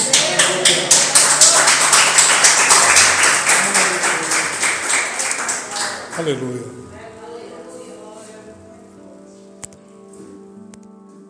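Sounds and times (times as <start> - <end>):
audience applause: 0.0 - 6.5
speech: 6.2 - 7.0.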